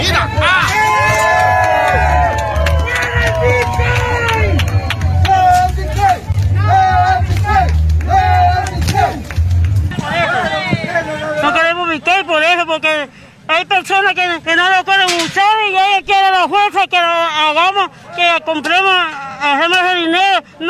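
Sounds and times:
crowd protesting in El Salvador: 0.0s - 20.6s
speech: 18.4s - 20.1s.

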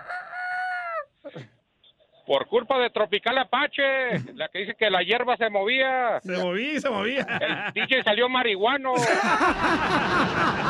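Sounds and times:
rooster crowing: 0.0s - 1.0s
speech: 1.3s - 1.5s, 2.3s - 10.6s
laughter: 6.4s - 8.2s, 9.0s - 10.6s.

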